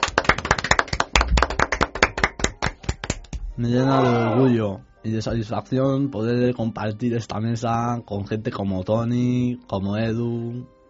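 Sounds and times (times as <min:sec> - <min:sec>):
clapping applause: 0:00.0 - 0:03.4
speech: 0:03.6 - 0:10.8.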